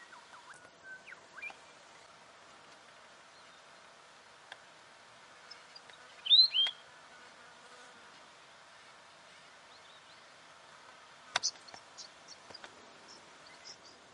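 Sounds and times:
weebill singing ticking notes and warbled phrases: 0.0 - 1.7, 5.5 - 6.8, 11.4 - 14.0.

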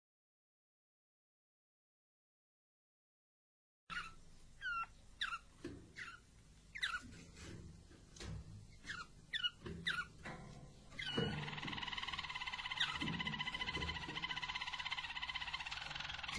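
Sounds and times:
Belgian Harz Roller canary song with rolling tours and trills: 3.9 - 16.3.

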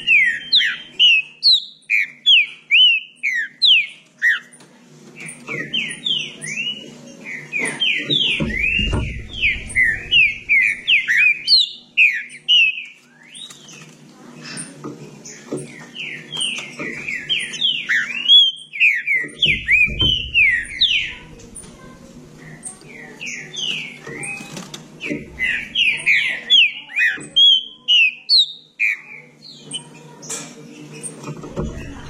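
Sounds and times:
Green-winged saltator whistling song: 0.0 - 4.5, 5.2 - 13.7, 15.8 - 21.3, 22.5 - 29.9
low thumps: 8.3 - 11.2, 19.4 - 22.6.

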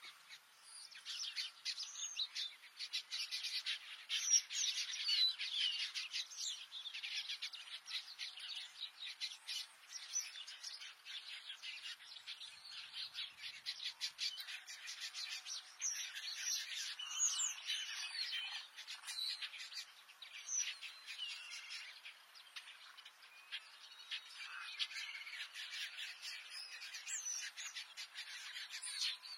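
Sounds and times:
Red-billed quelea song of rapid buzzy and squeaky notes: 0.0 - 29.3.

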